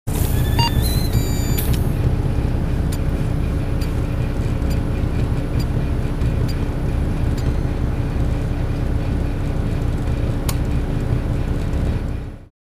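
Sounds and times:
blood counter machine heavy hum: 0.1s - 12.5s
blood counter fast beeps: 0.3s - 1.8s, 7.4s - 7.8s.

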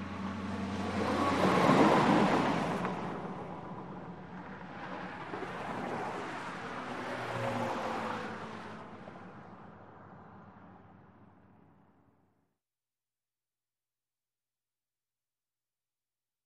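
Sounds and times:
light highway traffic of cars and trucks passing: 0.0s - 11.9s.

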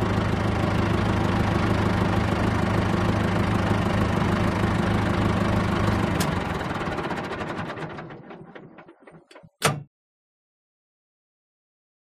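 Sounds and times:
tractor idling heard from the interior: 0.0s - 9.6s.

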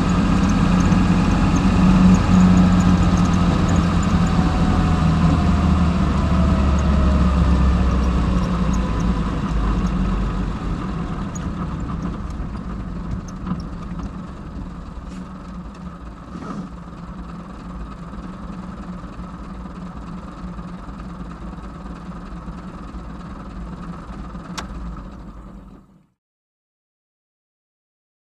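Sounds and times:
Austin Sixteen interior at constant speed with gear changes, slow, bumpy and rattly: 0.0s - 19.0s
Austin Sixteen engine idling and switching off: 0.0s - 26.1s.

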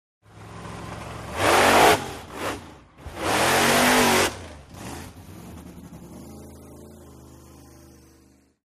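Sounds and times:
monster truck revving and racing through an obstacle course: 0.2s - 8.6s.

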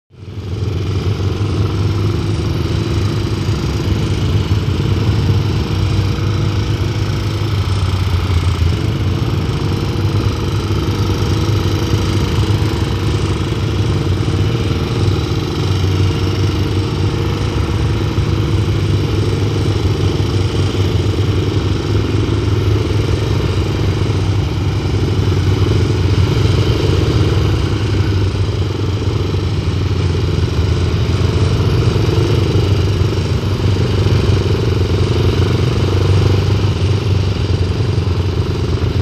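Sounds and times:
biker group motorcycles and four-wheeled motorbike passing by: 0.2s - 39.0s.

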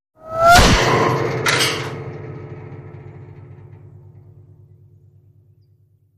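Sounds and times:
bullet whirring and impacting metal: 0.2s - 2.0s.

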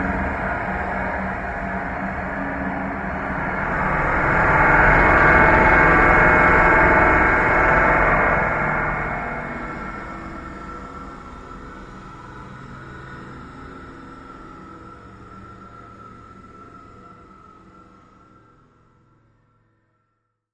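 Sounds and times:
metallic modulated wind: 0.0s - 13.6s.

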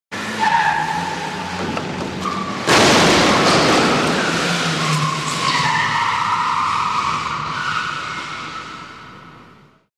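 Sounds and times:
car speeding away: 0.2s - 7.5s
car peeling out in an underground parking lot: 0.2s - 9.7s
car crashing into a wall in an underground parking lot: 1.5s - 5.9s.

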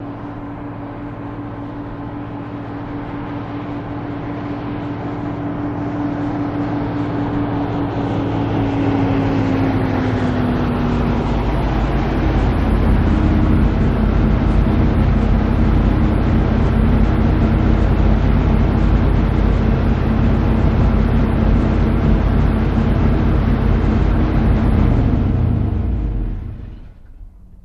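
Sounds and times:
Dodge school bus in street: 0.0s - 27.6s.

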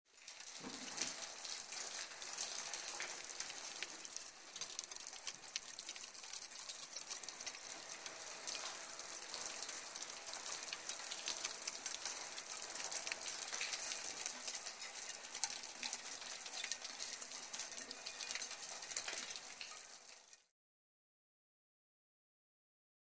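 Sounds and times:
water dripping on metal: 0.1s - 20.5s.

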